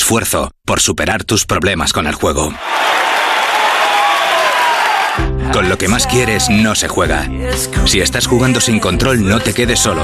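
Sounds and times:
speech: 0:00.1 - 0:03.1, 0:05.2 - 0:10.0
large crowd applause: 0:02.6 - 0:05.3
faint cheering: 0:02.6 - 0:06.6.

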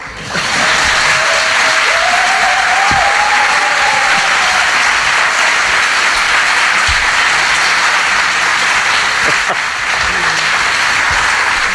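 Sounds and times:
sustained loud applause from a large audience: 0:00.0 - 0:11.7
laughter: 0:00.1 - 0:11.7.

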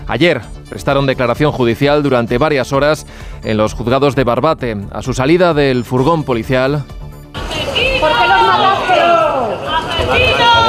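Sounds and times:
speech: 0:00.1 - 0:07.0, 0:10.0 - 0:10.6
small crowd of neighbours shouting: 0:07.4 - 0:10.6.

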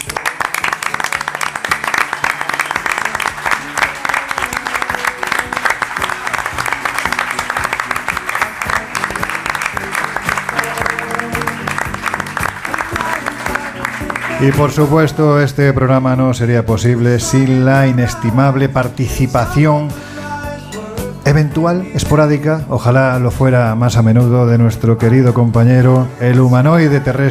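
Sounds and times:
audience applause: 0:00.0 - 0:15.0
speech: 0:14.4 - 0:20.0, 0:21.3 - 0:27.3.

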